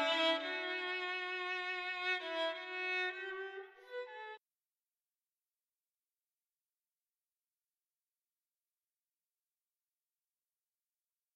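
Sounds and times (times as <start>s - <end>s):
violin playing indoors: 0.0s - 4.4s.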